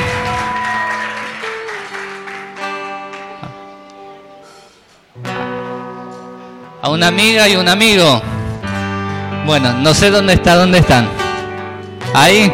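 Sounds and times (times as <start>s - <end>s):
audience applause: 0.0s - 3.7s
speech: 6.8s - 8.3s, 9.5s - 11.2s, 12.1s - 12.5s.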